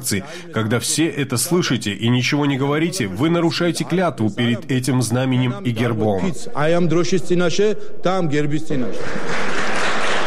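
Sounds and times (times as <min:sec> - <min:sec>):
speech: 0:00.0 - 0:09.6
applause from many people in parliament: 0:08.9 - 0:10.2.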